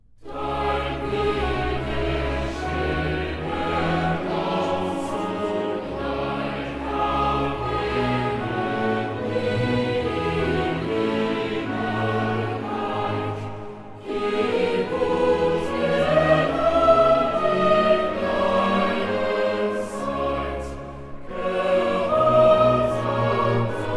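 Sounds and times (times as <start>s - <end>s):
choir singing: 0.2s - 23.9s.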